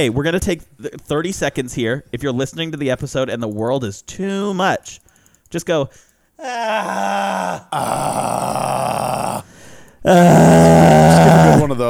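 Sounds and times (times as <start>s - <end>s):
speech: 0.0s - 11.8s
person giving a cathartic scream: 6.4s - 9.5s, 10.1s - 11.7s.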